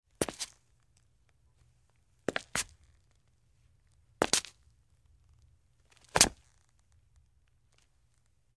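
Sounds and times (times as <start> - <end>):
footsteps on concrete: 0.2 - 0.6, 2.3 - 2.8, 4.2 - 4.6, 6.0 - 6.4.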